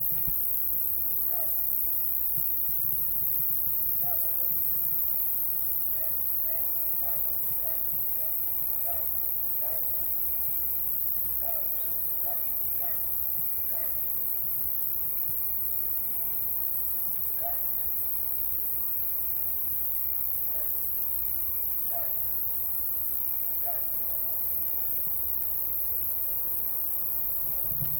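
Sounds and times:
cicadas: 0:00.0 - 0:27.9.

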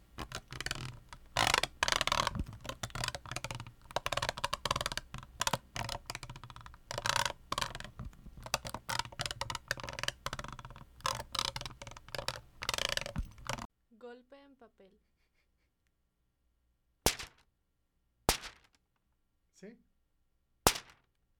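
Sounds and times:
brush scrubbing a bottle: 0:00.0 - 0:13.7
speech: 0:19.6 - 0:19.9.

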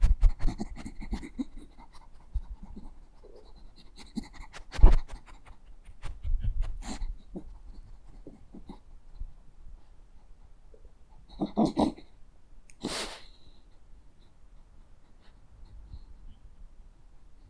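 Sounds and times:
dog sniffing: 0:00.0 - 0:08.8, 0:12.8 - 0:13.5.

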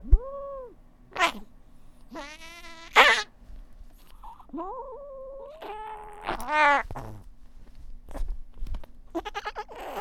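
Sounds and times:
cat yowling: 0:00.0 - 0:01.5, 0:02.1 - 0:03.3, 0:04.6 - 0:07.0.

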